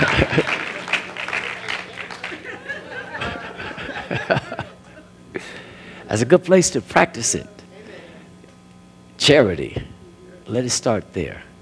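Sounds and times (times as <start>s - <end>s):
audience clapping: 0.0s - 3.6s
laughter: 0.0s - 5.7s
speech: 6.1s - 7.6s, 9.3s - 9.8s, 10.5s - 11.5s.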